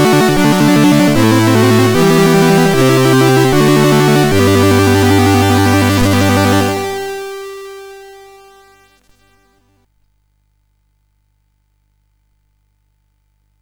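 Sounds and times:
national anthem as chiptune on MOS6581R4 SID chip: 0.0 - 9.5.

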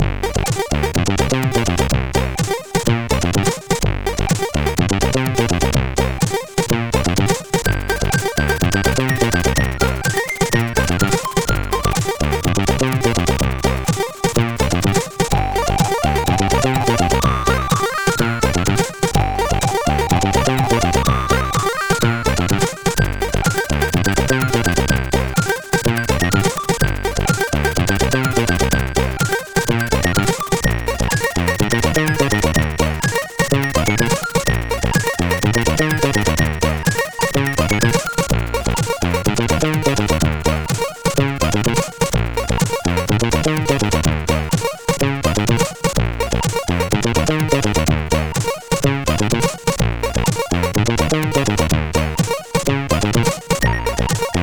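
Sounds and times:
techno music mix: 0.2 - 54.4.

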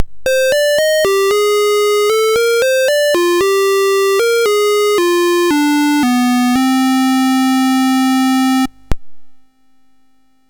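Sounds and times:
SID MOS6581R4 chiptune music: 0.2 - 8.7.

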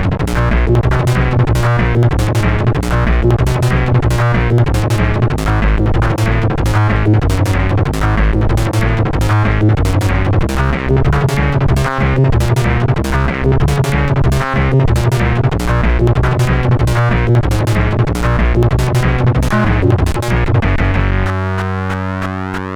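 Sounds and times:
heavy phaser synth on a SID 8580 chip: 0.0 - 22.7.

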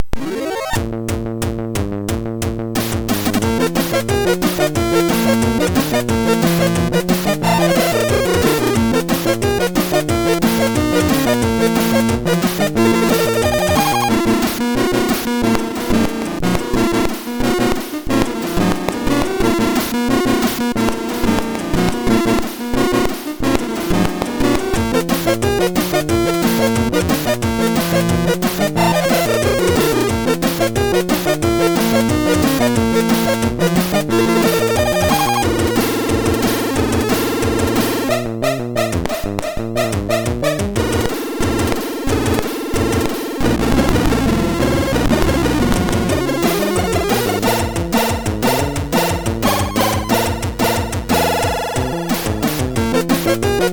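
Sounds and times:
battle music on MOS6581R4 SID chip: 0.0 - 53.7.

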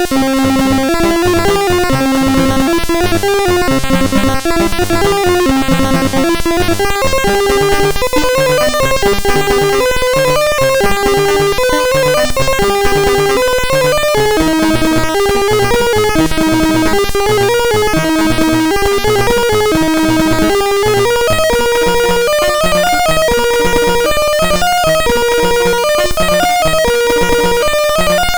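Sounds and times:
generated chiptune music on SID MOS6581R2 chip: 0.0 - 28.3.

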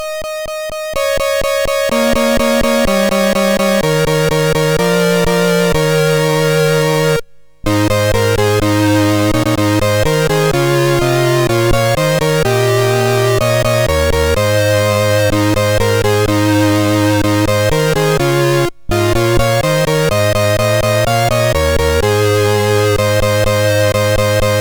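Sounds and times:
chiptune Christmas melody on a MOS6581R4 sound chip: 0.0 - 24.5.

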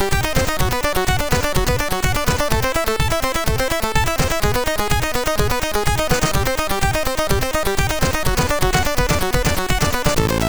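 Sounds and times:
drum sound from MOS6581R3 SID chip: 0.1 - 10.4.

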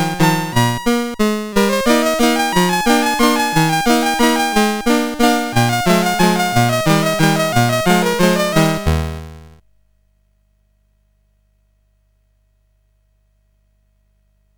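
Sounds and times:
waltz: 0.0 - 9.5.

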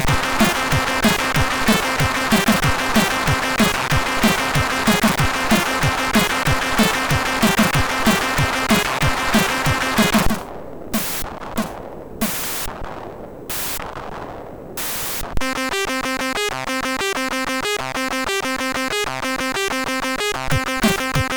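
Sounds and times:
techno music on MOS6581R4 chip: 0.0 - 10.4, 15.4 - 21.3.

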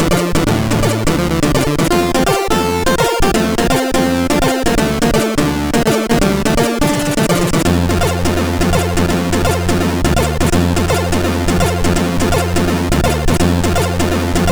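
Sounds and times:
chiptune jig on a SID sound chip: 0.0 - 14.4.

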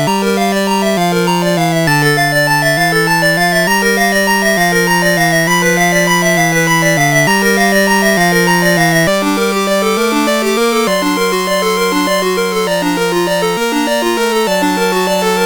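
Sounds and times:
chiptune synth ocean sound from a MOS6581R4 SID chip: 0.0 - 15.4.

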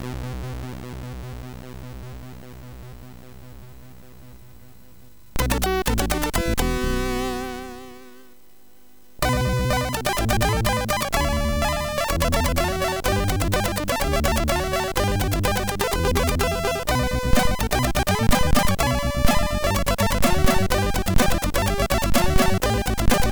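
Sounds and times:
SID MOS6581R4 chiptune music: 5.4 - 7.7, 9.2 - 23.3.

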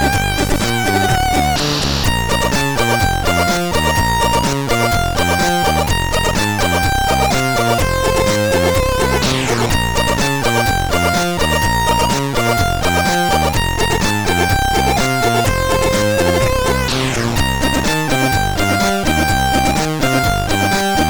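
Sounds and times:
rhythmic beat on CSG8580R5: 0.0 - 21.0.

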